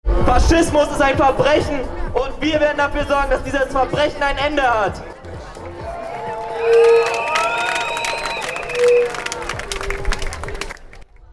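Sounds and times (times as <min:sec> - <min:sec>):
large crowd at a protest blockade shouting and cheering: 0:00.1 - 0:11.1
speech: 0:00.3 - 0:05.1, 0:06.6 - 0:07.1
whistle blasts: 0:05.8 - 0:11.0.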